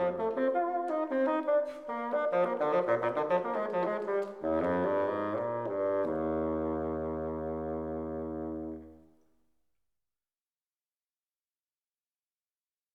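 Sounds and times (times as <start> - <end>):
bassoon: 0.0 - 9.2.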